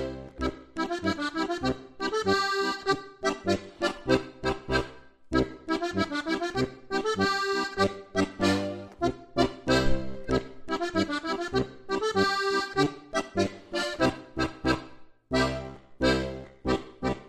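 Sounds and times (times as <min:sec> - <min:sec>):
folk dance music: 0:00.0 - 0:17.2.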